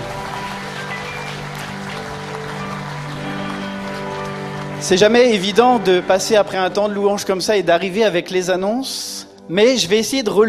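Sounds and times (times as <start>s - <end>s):
audience applause: 0.0s - 6.0s
speech: 4.8s - 10.4s.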